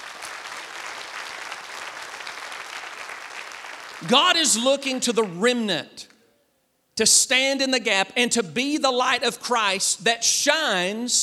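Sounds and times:
audience hand clapping: 0.0s - 4.6s
speech: 4.0s - 6.1s, 7.0s - 11.2s.

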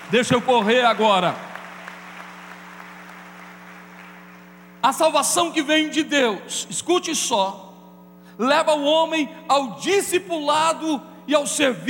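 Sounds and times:
audience applause: 0.0s - 4.6s
speech: 0.1s - 1.5s, 4.8s - 7.7s, 8.4s - 11.8s.

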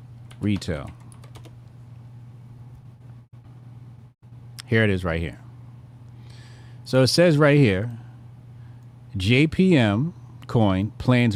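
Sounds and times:
steady low hum: 0.0s - 11.3s
typing on a computer keyboard: 0.3s - 1.6s
speech: 0.4s - 1.0s, 4.7s - 5.4s, 6.9s - 8.0s, 9.2s - 11.3s.

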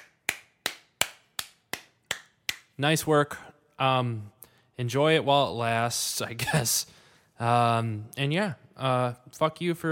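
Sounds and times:
slow clapping: 0.0s - 2.8s
speech: 2.8s - 9.9s.

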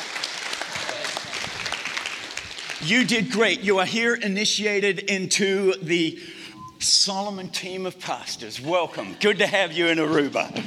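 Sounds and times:
audience clapping at a 2022 gathering in Aruba: 0.0s - 2.8s
speech: 2.8s - 10.6s.

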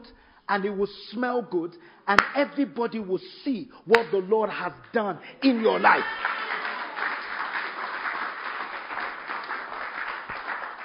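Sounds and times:
speech: 0.5s - 6.3s
audience applause: 5.5s - 10.8s.

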